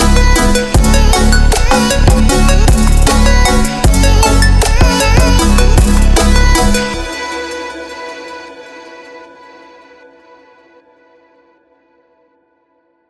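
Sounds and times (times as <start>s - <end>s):
melodic trap music: 0.0s - 9.6s.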